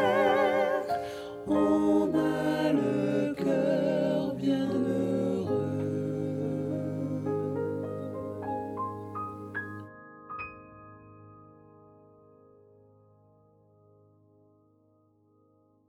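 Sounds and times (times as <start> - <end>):
gospel ensemble tutti: 0.0 - 9.8.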